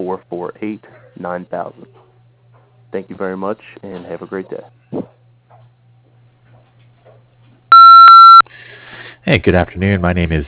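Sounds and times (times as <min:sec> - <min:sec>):
speech: 0:00.0 - 0:02.0, 0:02.9 - 0:05.1, 0:09.3 - 0:10.4
answering machine beep: 0:07.7 - 0:08.4.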